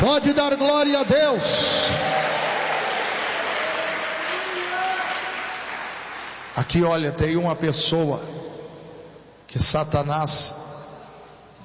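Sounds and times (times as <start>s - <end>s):
speech: 0.0s - 2.4s, 6.6s - 8.5s, 9.5s - 10.7s
audience applauding: 1.2s - 6.6s.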